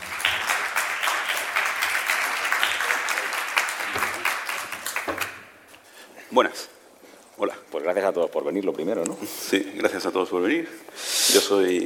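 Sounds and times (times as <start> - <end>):
audience applause: 0.0 - 5.7
speech: 6.4 - 6.8, 7.4 - 11.8.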